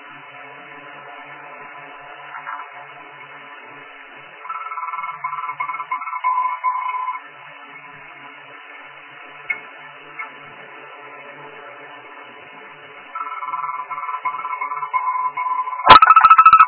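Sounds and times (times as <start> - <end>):
frog croaking: 4.5 - 7.2, 13.2 - 16.6.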